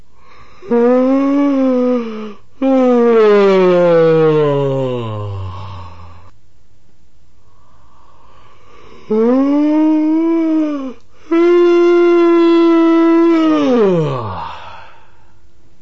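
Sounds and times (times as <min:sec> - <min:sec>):
patient yawning during breathing exercises: 0:00.4 - 0:06.3, 0:09.0 - 0:15.3.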